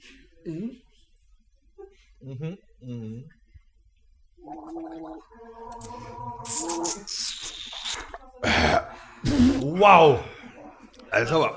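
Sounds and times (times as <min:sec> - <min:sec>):
speech: 0:00.4 - 0:00.8, 0:02.2 - 0:03.4, 0:04.4 - 0:10.3, 0:11.1 - 0:11.5
person gulping beer: 0:04.4 - 0:09.7.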